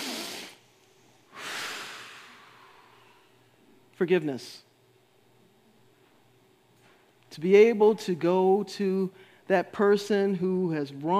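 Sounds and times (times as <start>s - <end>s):
deep inhalations during a guided breathing exercise: 0.0s - 3.6s
speech: 4.0s - 4.7s, 7.4s - 11.1s.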